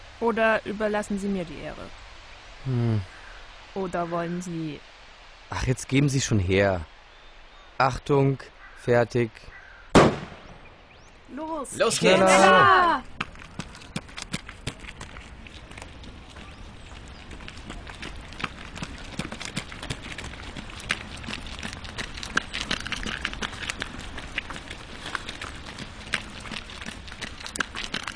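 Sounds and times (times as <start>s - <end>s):
speech: 0.2s - 2.0s, 2.6s - 3.2s, 3.8s - 4.9s, 5.5s - 6.9s, 7.8s - 9.6s, 11.3s - 13.2s
children running in groups through a forest: 13.1s - 28.1s.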